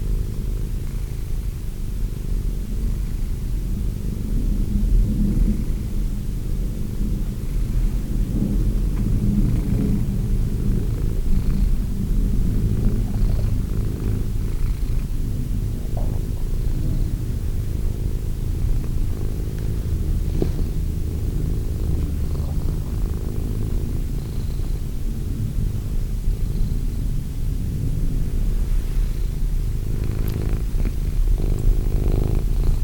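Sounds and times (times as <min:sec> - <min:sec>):
cat purring: 0:00.0 - 0:32.8
faint clicks: 0:30.0 - 0:31.0.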